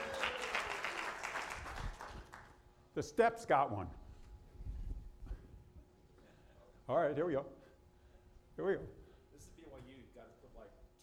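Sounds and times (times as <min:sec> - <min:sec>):
audience applause during a prize giveaway at a game: 0:00.0 - 0:02.5
speech: 0:03.0 - 0:04.0, 0:06.9 - 0:07.6, 0:08.6 - 0:09.0.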